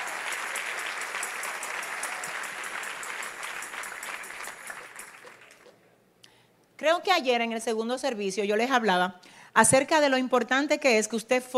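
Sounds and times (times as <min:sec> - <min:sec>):
crowd applauding: 0:00.0 - 0:05.8
speech: 0:06.8 - 0:11.5.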